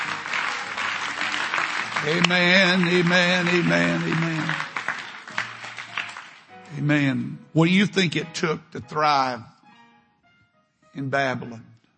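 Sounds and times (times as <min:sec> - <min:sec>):
audience clapping hands: 0:00.0 - 0:06.6
speech: 0:02.0 - 0:04.7, 0:06.7 - 0:09.5, 0:11.0 - 0:11.7.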